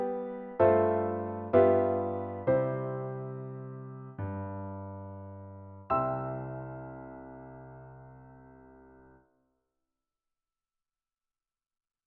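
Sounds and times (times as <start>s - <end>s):
piano: 0.0s - 9.3s.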